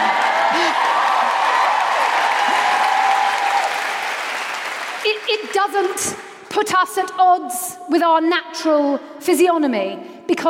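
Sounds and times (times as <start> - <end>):
audience cheering and clapping: 0.0 - 6.0
speech: 5.7 - 10.4.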